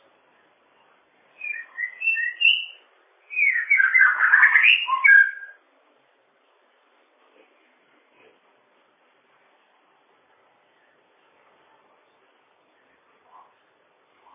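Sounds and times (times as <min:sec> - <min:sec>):
bird whistling song: 0:01.4 - 0:05.6.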